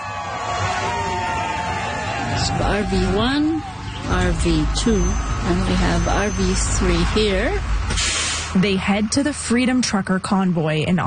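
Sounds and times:
large crowd of supporters cheering a convoy send-off in Victoria, BC: 0.0 - 9.6
speech: 2.4 - 11.0.

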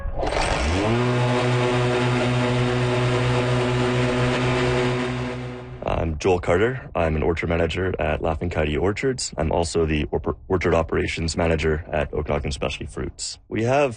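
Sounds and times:
autonomous electric mower Burro Grande running: 0.2 - 5.9
speech: 6.3 - 13.9.

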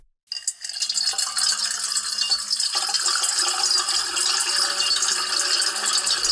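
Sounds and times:
layered water pouring into metal bowl: 0.4 - 6.2.

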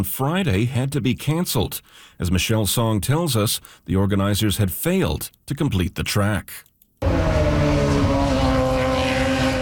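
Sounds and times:
speech: 0.0 - 8.0
IndyCar race cars roaring on the temporary street circuit in Markham, Ontario: 7.0 - 9.6.

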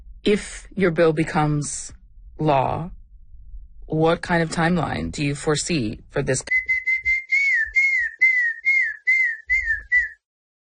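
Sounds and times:
speech: 0.2 - 3.0, 3.9 - 6.6
person whistling a bird-like call: 6.5 - 10.2.

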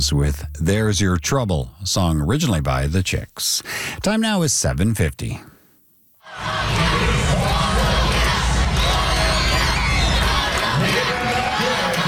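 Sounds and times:
speech: 0.0 - 5.5
school kids cheering at a football match: 6.3 - 12.0.

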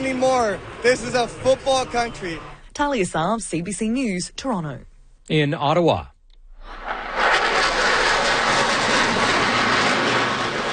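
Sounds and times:
Canadian CF-18 Hornets and American F-35 Lightning IIs flypast: 0.0 - 2.6, 6.6 - 10.7
speech: 0.0 - 6.1.

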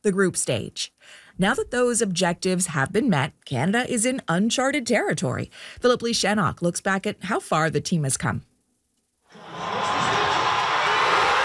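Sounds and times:
speech: 0.0 - 8.5
crowd cheering at a watch party in Toronto: 9.3 - 11.4.

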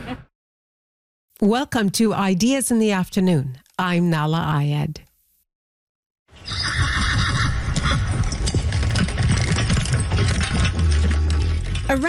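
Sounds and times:
speech: 1.4 - 5.1, 11.9 - 12.0
horse whinnying: 6.4 - 12.0
hooves clip-clopping: 6.5 - 12.0
busy mechanical rattle: 8.1 - 12.0.

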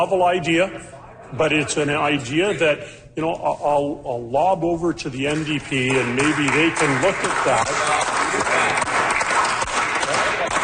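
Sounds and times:
speech: 0.0 - 8.1
slow clapping in a legislature: 5.3 - 10.6.

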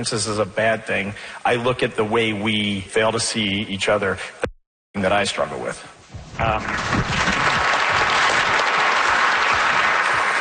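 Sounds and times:
speech: 0.0 - 7.2
large audience applause: 6.4 - 10.3.

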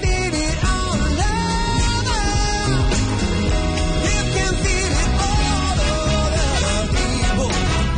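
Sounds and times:
band of former high school musicians playing upbeat ensemble music: 0.0 - 7.9.

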